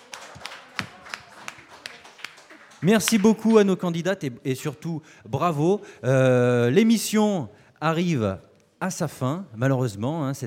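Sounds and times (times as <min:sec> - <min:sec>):
audience applause: 0:00.0 - 0:03.7
soft noise: 0:00.0 - 0:10.4
speech: 0:02.8 - 0:10.4.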